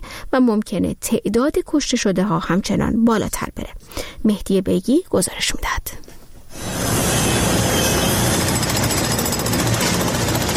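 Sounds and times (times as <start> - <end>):
speech: 0.4 - 6.8
rescue drilling tools: 6.5 - 10.5
rescue machinery in northern Syria and southern Turkey: 6.5 - 10.5.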